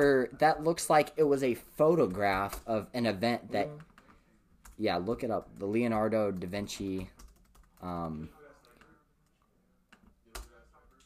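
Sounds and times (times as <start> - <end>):
speech: 0.0 - 3.9, 4.8 - 7.2, 7.8 - 8.4
typing on a computer keyboard: 2.0 - 2.8, 3.7 - 11.0.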